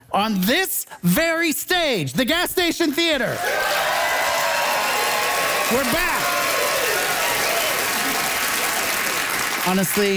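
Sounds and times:
speech: 0.1s - 4.0s, 5.7s - 6.4s, 9.6s - 10.1s
theater audience applause at the Gas Station Theater in Winnipeg: 3.4s - 10.1s.

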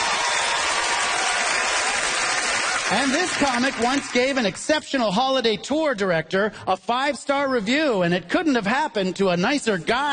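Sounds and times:
hometown crowd cheering and applauding: 0.0s - 4.4s
speech: 2.9s - 10.1s.

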